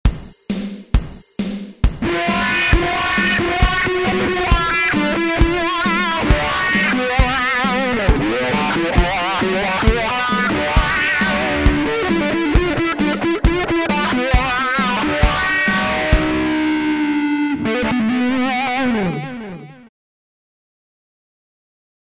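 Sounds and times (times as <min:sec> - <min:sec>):
auto-wah effect: 0:02.0 - 0:19.9.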